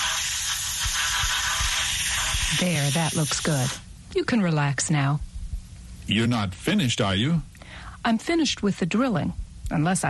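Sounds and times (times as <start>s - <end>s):
dental water spray rinsing out a tooth: 0.0s - 3.8s
speech: 2.5s - 5.3s, 6.1s - 10.0s.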